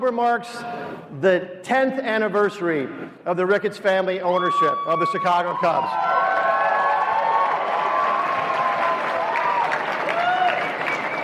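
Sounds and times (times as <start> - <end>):
speech: 0.0 - 6.1
polite golf-style applause: 5.8 - 11.2.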